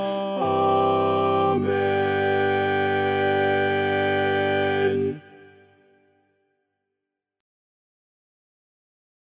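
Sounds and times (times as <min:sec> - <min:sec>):
tenor singing: 0:00.0 - 0:06.0.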